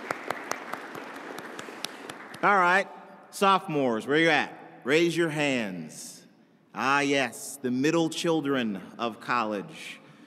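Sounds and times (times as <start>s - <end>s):
audience applause: 0.0s - 2.5s
speech: 2.4s - 6.2s, 6.8s - 10.0s.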